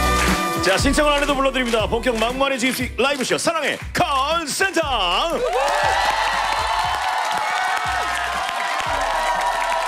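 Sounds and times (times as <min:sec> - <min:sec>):
studio audience applause: 0:00.0 - 0:01.8, 0:05.3 - 0:09.8
speech: 0:00.6 - 0:06.5
studio audience cheering: 0:05.3 - 0:09.8.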